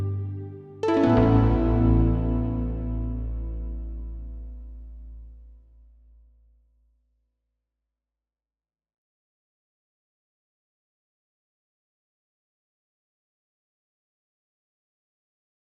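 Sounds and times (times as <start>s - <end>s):
plucked note: 0.0s - 5.5s.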